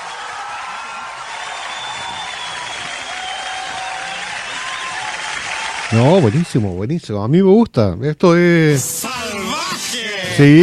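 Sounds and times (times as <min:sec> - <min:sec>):
audience applause: 0:00.0 - 0:06.8
speech: 0:05.9 - 0:09.0, 0:10.4 - 0:10.6.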